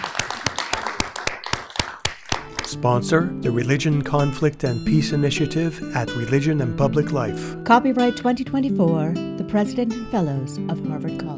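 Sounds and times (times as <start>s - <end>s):
audience applause: 0.0s - 2.1s
speech: 2.7s - 11.3s.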